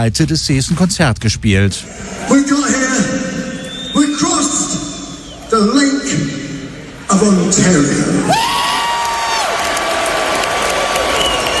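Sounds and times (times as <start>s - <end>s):
speech: 0.0s - 3.3s, 5.5s - 6.4s, 7.1s - 8.7s
concert audience cheering at a heavy metal show on the Canadian side of Lake Ontario: 1.8s - 4.6s, 8.2s - 11.5s.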